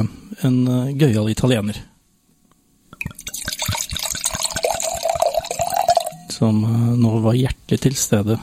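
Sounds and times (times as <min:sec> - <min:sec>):
speech: 0:00.0 - 0:01.9, 0:06.4 - 0:08.4
red wine being poured into a glass: 0:03.0 - 0:06.4.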